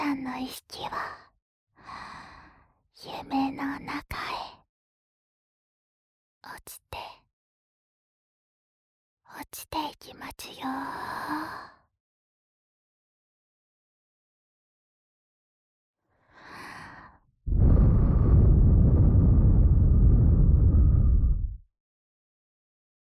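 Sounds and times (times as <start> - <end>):
speech: 0.2 - 1.2, 3.0 - 4.6, 6.4 - 7.2, 9.4 - 11.8
mother's breathing offered to a baby in place of a lullaby: 16.2 - 21.6.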